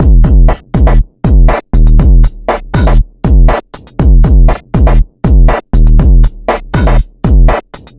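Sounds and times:
bubble hip hop beat: 0:00.0 - 0:07.9.

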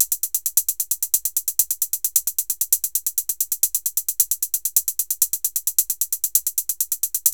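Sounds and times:
drum: 0:00.0 - 0:07.3.

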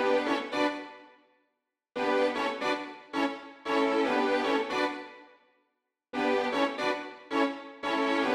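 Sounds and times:
strings at 115 bpm: 0:00.0 - 0:01.1, 0:02.0 - 0:05.3, 0:06.2 - 0:08.3.

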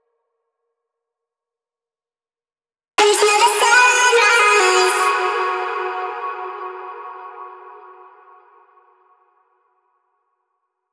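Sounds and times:
person singing: 0:03.0 - 0:08.2.

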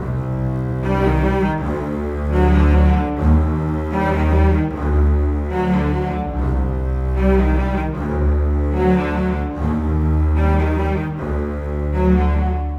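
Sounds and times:
cinematic bass cello: 0:00.0 - 0:12.7.

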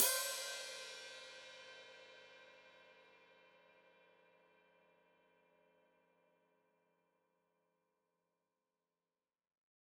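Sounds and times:
open hi-hat played with foot: 0:00.0 - 0:01.4.

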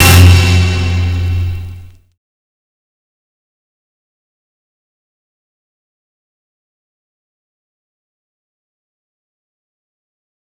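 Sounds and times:
strings in F sharp: 0:00.0 - 0:01.9.

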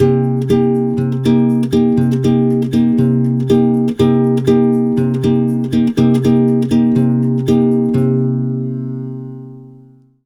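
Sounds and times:
Brazilian bossa nova guitar in C minor: 0:00.0 - 0:10.0.

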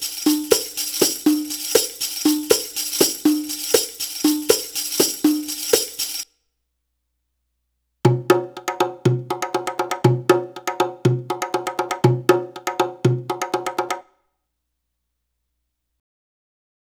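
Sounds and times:
Arabic rhythm percussion: 0:00.0 - 0:06.2, 0:08.1 - 0:14.0.

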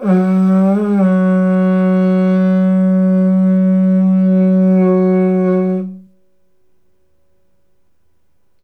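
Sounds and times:
tusk ivory horn: 0:00.0 - 0:06.2.

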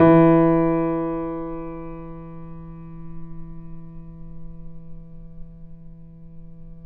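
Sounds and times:
grand piano E6 played softly, off mic: 0:00.0 - 0:03.0.

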